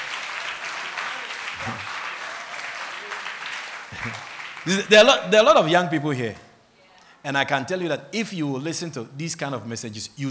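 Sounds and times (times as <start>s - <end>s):
audience clapping: 0.0s - 6.6s
laughter: 0.0s - 8.6s
speech: 1.6s - 1.9s, 4.0s - 6.4s, 7.2s - 10.2s.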